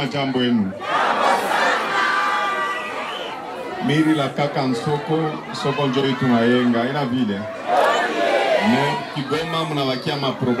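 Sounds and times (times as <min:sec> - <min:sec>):
speech: 0:00.0 - 0:01.0, 0:03.8 - 0:07.8, 0:08.6 - 0:10.5
crowd surrounding a governor singing and dancing: 0:00.0 - 0:10.5.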